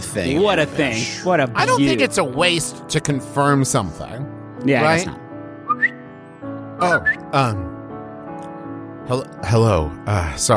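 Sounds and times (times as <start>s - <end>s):
speech: 0.2s - 5.2s, 6.8s - 7.7s, 9.1s - 10.5s
person imitating a bird with whistled chirps and warbling calls: 5.7s - 6.0s, 6.9s - 7.2s.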